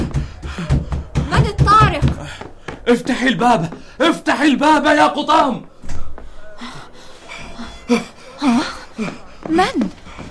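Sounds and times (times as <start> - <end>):
frightened man panting after running: 0.0 - 1.3, 2.1 - 4.0, 5.7 - 10.2
speech: 2.9 - 5.7, 7.9 - 10.0.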